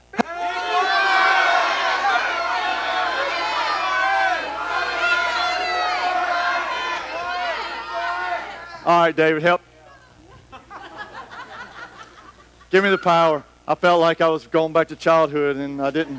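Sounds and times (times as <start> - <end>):
laughter: 0.0 - 8.9, 10.2 - 13.2, 15.9 - 16.1
church congregation shouting together on cue: 0.0 - 10.1
speech: 8.9 - 9.7, 12.7 - 16.1.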